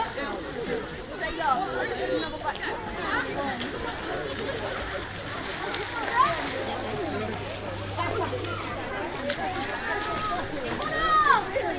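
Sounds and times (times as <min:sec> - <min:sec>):
crowd chatter at University of Exeter outdoor swimming pool: 0:00.0 - 0:11.7
steady low hum: 0:03.7 - 0:10.6.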